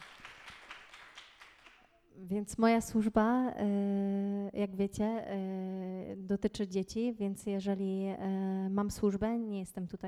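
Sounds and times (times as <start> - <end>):
audience clapping: 0.0 - 2.0
speech: 2.2 - 10.0.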